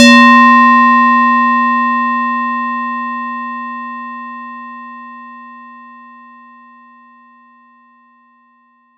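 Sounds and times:
ringing effect: 0:00.0 - 0:06.6.

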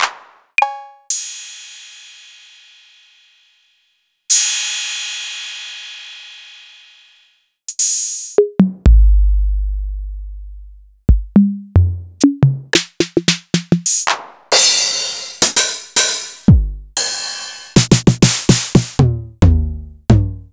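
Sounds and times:
Akai MPC2500 electronic drum kit: 0:00.0 - 0:01.3, 0:07.7 - 0:09.2, 0:11.1 - 0:20.5.

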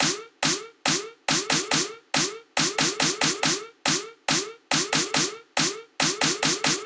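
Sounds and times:
drum loop with snare effects: 0:00.0 - 0:06.8.

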